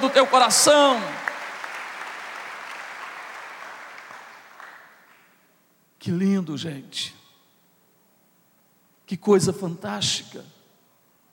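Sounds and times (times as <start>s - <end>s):
audience applauding: 0.0s - 5.4s
speech: 0.1s - 1.3s, 6.0s - 7.2s, 9.1s - 10.6s.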